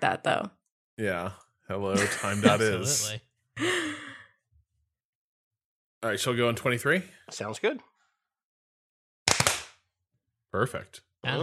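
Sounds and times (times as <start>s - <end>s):
speech: 0.0s - 4.0s, 6.0s - 7.9s, 10.5s - 11.4s
laughter: 1.0s - 4.1s
hand clap: 9.3s - 9.8s.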